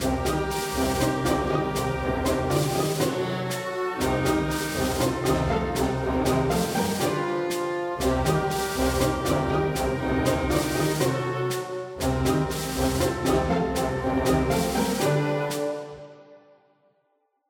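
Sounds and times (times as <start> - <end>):
military snare drum pizzicato: 0.0 - 15.8.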